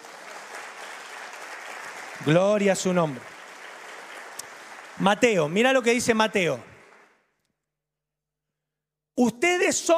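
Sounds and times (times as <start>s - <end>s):
audience applauding: 0.0s - 7.3s
speech: 2.2s - 3.3s, 5.0s - 6.7s, 9.2s - 9.9s.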